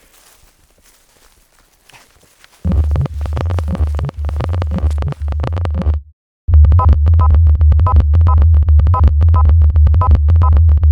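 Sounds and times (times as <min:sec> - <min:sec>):
footsteps of hikers walking: 0:00.0 - 0:06.0
low rumble: 0:02.7 - 0:10.9.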